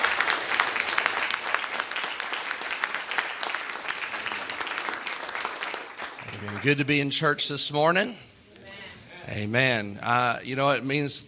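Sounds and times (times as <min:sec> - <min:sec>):
audience applauding in church: 0:00.0 - 0:07.2
speech: 0:06.4 - 0:08.3, 0:09.3 - 0:11.2.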